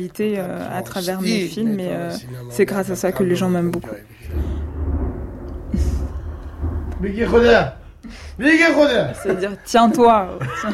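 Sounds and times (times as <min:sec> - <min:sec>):
speech: 0:00.0 - 0:04.5, 0:07.0 - 0:10.7
thunder: 0:04.2 - 0:09.4
laughter: 0:09.1 - 0:10.7.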